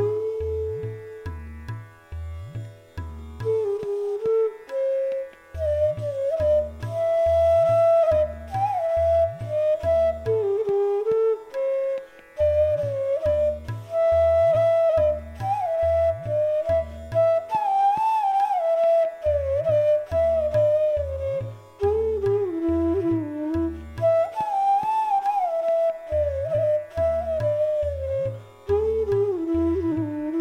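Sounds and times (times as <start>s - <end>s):
bansuri flute playing a raga: 0.0s - 30.3s.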